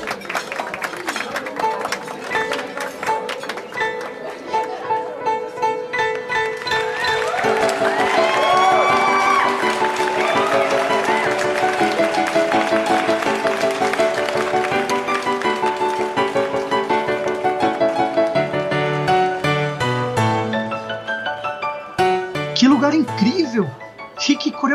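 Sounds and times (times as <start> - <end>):
audience applause and cheering: 0.0 - 4.3, 6.1 - 19.6
music: 0.0 - 24.7.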